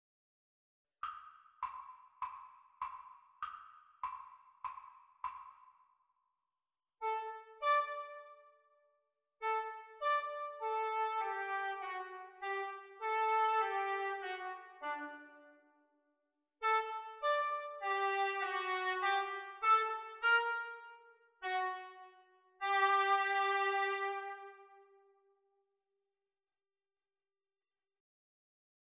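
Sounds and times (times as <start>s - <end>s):
oboe duet: 7.0s - 8.3s, 9.4s - 15.3s, 16.6s - 20.8s, 21.4s - 22.0s, 22.6s - 24.7s.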